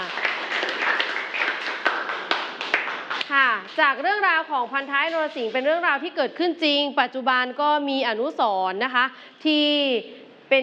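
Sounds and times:
classroom group clapping: 0.0 - 3.8
speech: 3.3 - 10.6.

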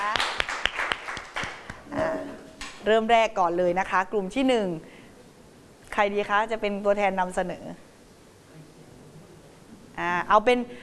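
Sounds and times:
classroom applause: 0.0 - 1.8
speech: 2.8 - 4.9, 6.0 - 7.9, 10.3 - 10.8.

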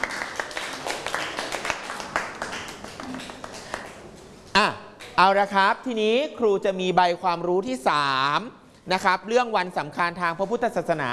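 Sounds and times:
people clapping: 0.0 - 4.2
speech: 4.6 - 11.1.

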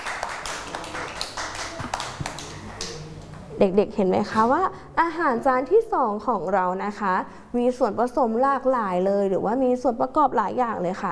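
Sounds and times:
children clapping hands: 0.0 - 3.3
speech: 3.6 - 11.1.

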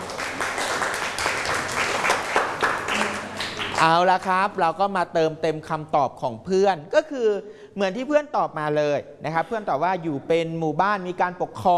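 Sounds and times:
classroom applause, clapping for a classmate: 0.0 - 4.0
speech: 3.8 - 11.7.

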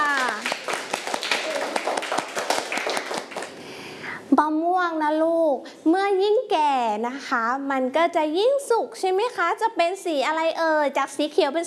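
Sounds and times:
children clapping for a group: 0.0 - 3.6
speech: 4.4 - 11.6.

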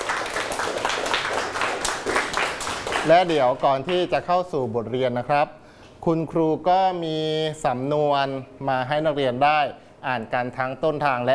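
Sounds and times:
classroom clapping: 0.0 - 4.0
speech: 3.0 - 11.3.

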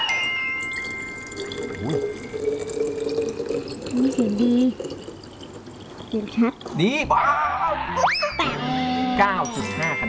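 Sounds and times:
soft splashes and clinks: 0.2 - 6.8
liquid being poured: 0.6 - 7.2
speech: 6.1 - 10.0.

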